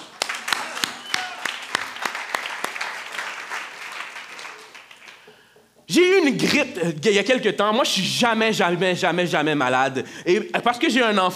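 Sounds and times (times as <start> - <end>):
audience applause: 0.0 - 5.5
speech: 5.9 - 11.3.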